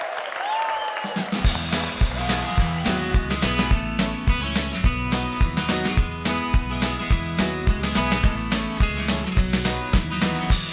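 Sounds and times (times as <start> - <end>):
audience applause: 0.0 - 3.8
band music with thumping beat: 1.1 - 10.7.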